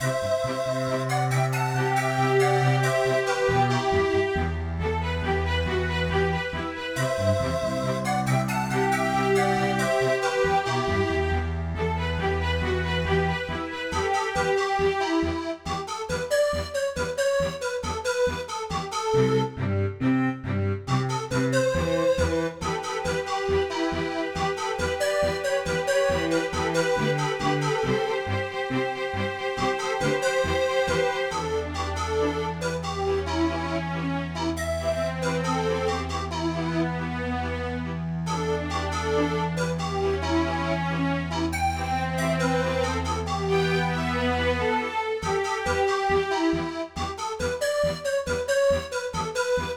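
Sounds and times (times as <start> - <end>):
MIDI music: 0.0 - 49.7.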